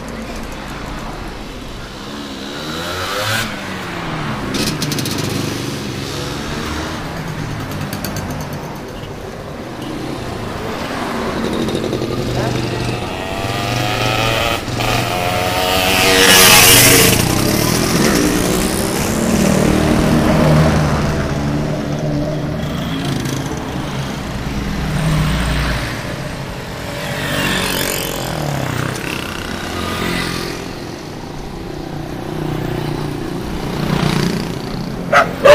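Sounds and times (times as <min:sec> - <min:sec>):
traffic in Kuta Bali: 0:00.0 - 0:35.5.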